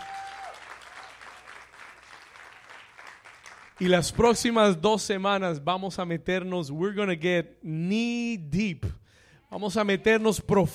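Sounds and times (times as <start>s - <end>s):
audience applauding: 0.0s - 4.0s
speech: 3.8s - 10.7s.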